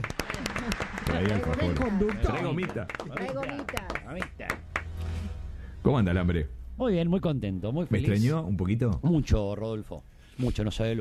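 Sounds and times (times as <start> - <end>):
audience applause: 0.0 - 5.0
speech: 1.2 - 4.7, 5.8 - 10.9.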